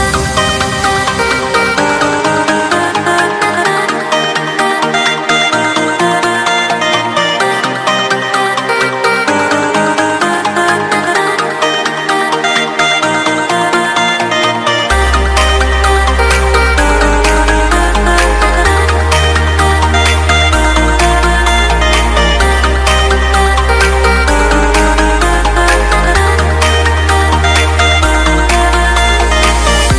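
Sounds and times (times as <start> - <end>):
electro music: 0.0 - 29.9.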